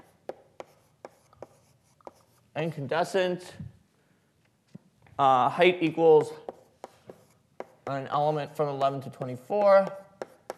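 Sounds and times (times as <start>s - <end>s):
handwriting strokes writing out a model: 0.0s - 2.5s, 6.2s - 7.9s, 9.2s - 10.5s
speech: 2.6s - 3.7s, 5.2s - 6.4s, 7.9s - 10.0s.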